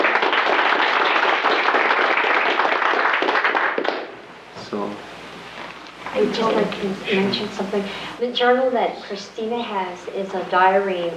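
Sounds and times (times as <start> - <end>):
audience round of applause: 0.0 - 4.2
speech: 6.2 - 11.1.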